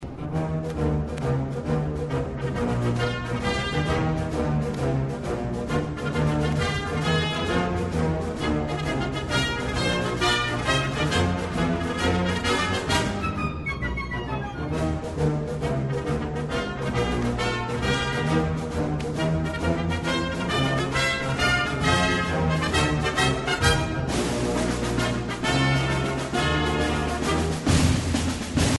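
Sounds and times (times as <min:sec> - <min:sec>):
swing music: 0:00.0 - 0:28.7.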